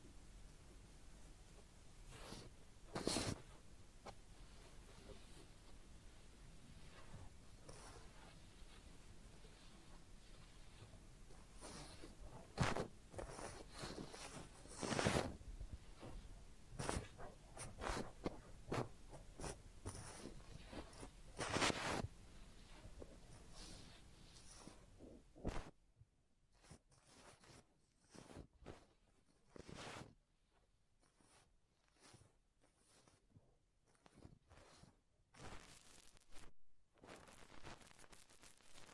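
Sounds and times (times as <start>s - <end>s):
head massage and ear cleaning scratching and rubbing: 2.1s - 25.8s, 26.5s - 38.9s.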